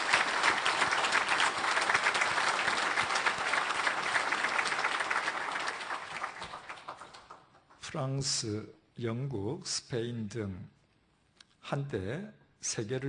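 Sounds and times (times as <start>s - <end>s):
audience applause: 0.0s - 7.8s
speech: 7.9s - 10.8s, 11.7s - 13.0s.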